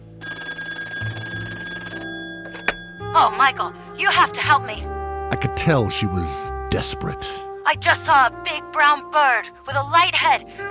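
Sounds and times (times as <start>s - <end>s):
telephone bell ringing: 0.0s - 3.9s
speech: 3.2s - 10.7s.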